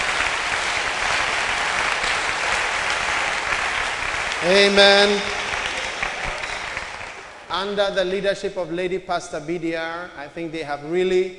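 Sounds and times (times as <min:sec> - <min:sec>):
audience applause: 0:00.0 - 0:07.8
speech: 0:04.4 - 0:05.4, 0:07.5 - 0:11.3.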